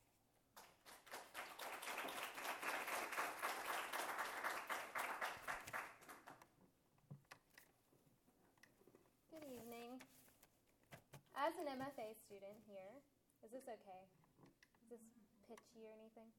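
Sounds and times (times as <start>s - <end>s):
audience applause welcoming a speaker at a literary reading: 0.6s - 6.4s
speech: 11.4s - 14.2s, 14.9s - 16.3s.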